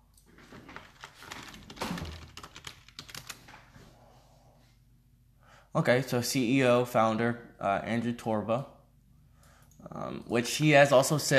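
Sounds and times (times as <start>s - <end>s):
typing on a computer keyboard: 0.8s - 3.6s
speech: 5.8s - 8.8s, 10.0s - 11.3s.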